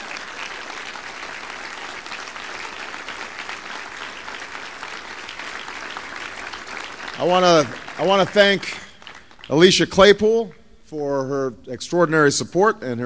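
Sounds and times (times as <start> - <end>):
sustained applause from a large audience: 0.0 - 9.8
speech: 7.2 - 8.8, 9.5 - 13.0.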